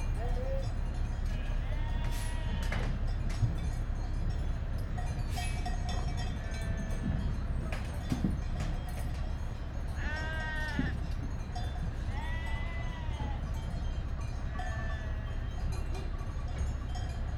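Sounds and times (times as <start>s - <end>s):
constant low mechanical rumble: 0.0s - 17.3s
sheep bleating with long quavering calls: 1.3s - 2.8s, 6.3s - 7.0s, 10.0s - 11.0s, 12.1s - 13.5s, 14.5s - 15.5s.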